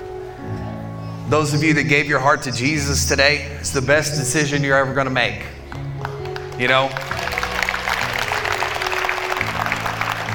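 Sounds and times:
soft sustained low musical tones: 0:00.0 - 0:10.3
speech: 0:01.3 - 0:05.6, 0:06.6 - 0:07.1
audience clapping: 0:05.6 - 0:10.3.

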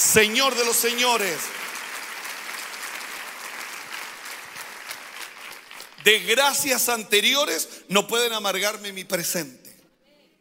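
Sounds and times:
audience applause: 0:00.0 - 0:06.5
speech: 0:00.1 - 0:01.7, 0:06.0 - 0:09.7.

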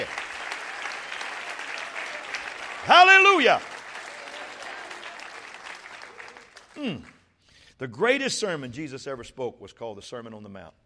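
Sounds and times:
audience clapping hands: 0:00.0 - 0:07.3
speech: 0:02.8 - 0:03.7, 0:06.8 - 0:07.1, 0:07.8 - 0:10.8.

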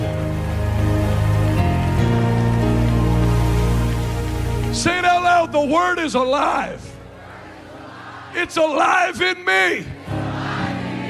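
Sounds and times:
audience clapping hands: 0:00.0 - 0:08.2
sustained keyboard chords: 0:00.0 - 0:11.0
speech: 0:04.8 - 0:06.9, 0:08.4 - 0:10.0.

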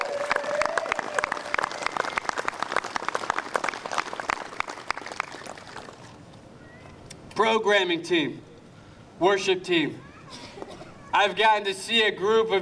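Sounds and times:
audience applause: 0:00.0 - 0:06.1
speech: 0:07.4 - 0:08.5, 0:09.2 - 0:10.1, 0:11.2 - 0:12.5.

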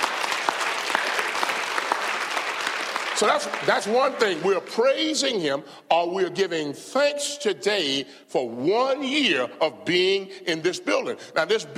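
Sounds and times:
crowd applause: 0:00.0 - 0:04.5
speech: 0:03.2 - 0:11.7.

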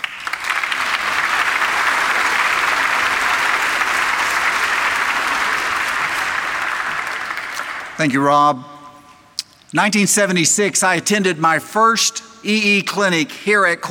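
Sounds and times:
audience applause welcoming a guest speaker at Coral Ridge: 0:00.0 - 0:08.1
speech: 0:08.0 - 0:08.7, 0:09.7 - 0:13.8.

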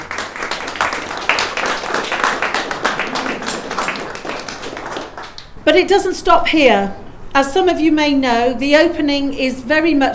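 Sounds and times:
audience applause: 0:00.0 - 0:05.6
speech: 0:05.6 - 0:10.1.

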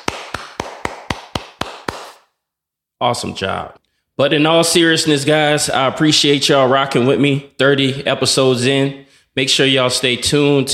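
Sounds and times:
hand clapping: 0:00.0 - 0:02.3
speech: 0:03.0 - 0:10.7.

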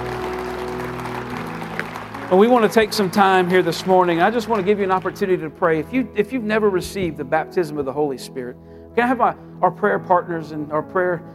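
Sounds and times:
crowd clapping in praise: 0:00.0 - 0:05.8
low sustained musical tone: 0:00.0 - 0:10.9
speech: 0:02.3 - 0:11.3.

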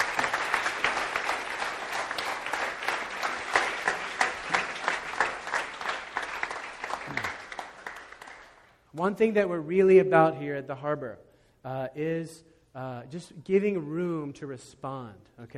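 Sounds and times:
audience applause: 0:00.0 - 0:08.7
speech: 0:09.0 - 0:15.5.

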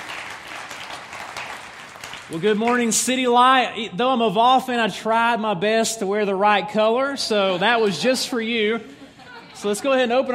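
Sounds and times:
audience applause at a church service: 0:00.0 - 0:02.8
speech: 0:02.3 - 0:09.0, 0:09.6 - 0:10.3
laughter: 0:07.3 - 0:10.3.

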